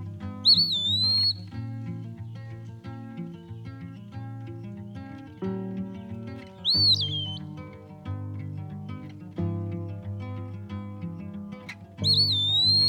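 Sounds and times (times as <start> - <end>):
eastern wood pewee song: 0.0 - 5.3, 6.3 - 7.6, 12.0 - 12.8
musical accompaniment: 0.0 - 12.8.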